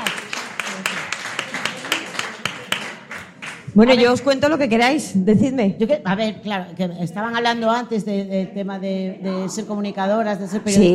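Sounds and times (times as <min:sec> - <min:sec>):
audience rhythmic clapping: 0:00.0 - 0:04.4
speech: 0:03.8 - 0:10.9.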